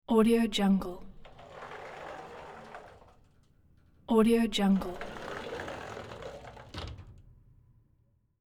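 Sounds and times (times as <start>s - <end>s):
glass sliding door opening and closing: 0.8s - 7.4s.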